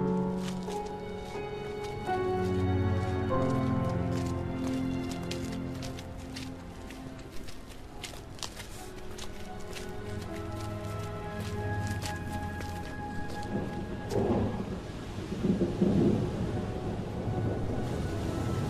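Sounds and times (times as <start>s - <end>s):
rain: 0.0s - 18.6s
thunder: 13.5s - 18.6s.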